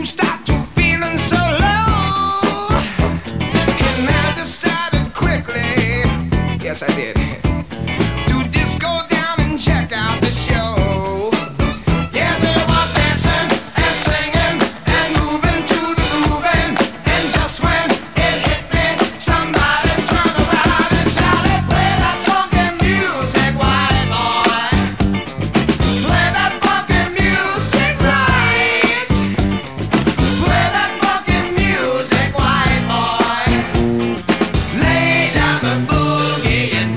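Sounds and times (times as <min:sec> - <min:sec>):
funky music: 0:00.0 - 0:36.9.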